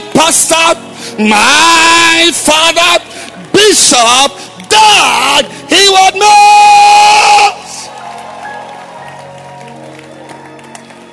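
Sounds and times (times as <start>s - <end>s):
speech: 0.3s - 7.4s
audience clapping hands: 7.6s - 11.1s.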